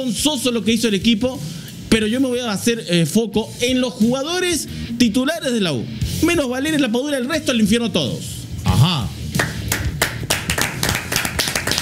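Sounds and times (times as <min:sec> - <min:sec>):
speech: 0:00.0 - 0:09.1
applause: 0:09.4 - 0:11.8.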